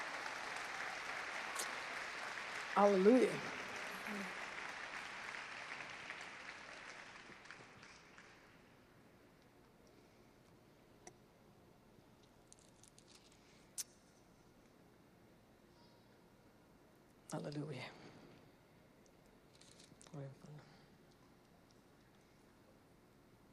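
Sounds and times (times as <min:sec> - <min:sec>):
audience clapping hands in applause: 0:00.0 - 0:08.7
speech: 0:02.8 - 0:04.4, 0:17.3 - 0:18.0.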